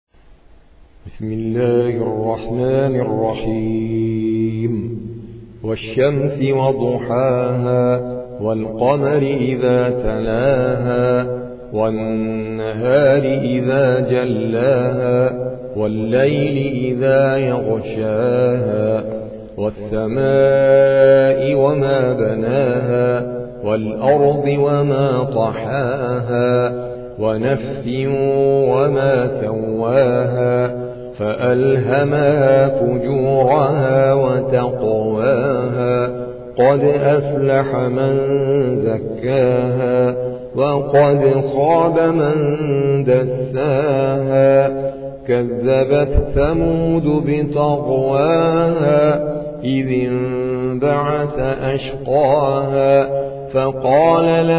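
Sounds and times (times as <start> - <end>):
Quran recitation by an Indian reciter: 0.7 - 54.5.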